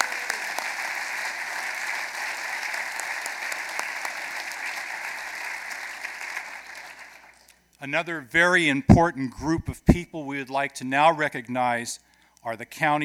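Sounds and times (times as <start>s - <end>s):
audience applause: 0.0s - 7.4s
speech: 7.8s - 13.0s.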